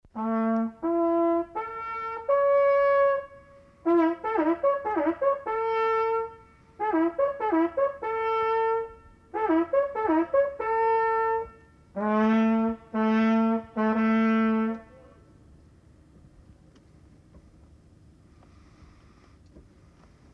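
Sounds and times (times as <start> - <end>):
horn: 0.1 - 15.2.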